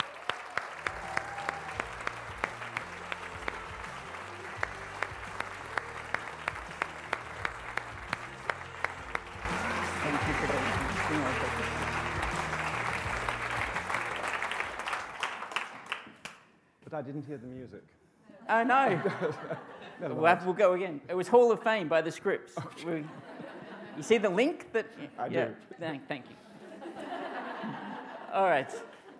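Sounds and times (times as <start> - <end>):
audience applause after a speaker's introduction at a Pilates event in the UK: 0.0 - 16.4
laughter: 9.5 - 12.0, 18.4 - 20.1, 22.6 - 24.2, 26.4 - 29.1
speech: 17.0 - 17.9, 18.5 - 23.2, 24.0 - 26.4, 28.4 - 29.0.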